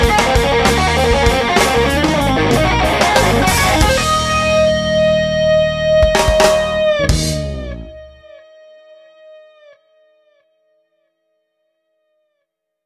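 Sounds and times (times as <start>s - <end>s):
rock guitar playing: 0.0s - 9.8s.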